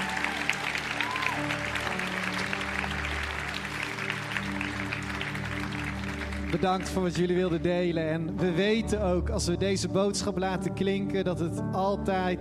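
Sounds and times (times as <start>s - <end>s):
audience applause: 0.0s - 8.0s
speech: 6.5s - 12.3s.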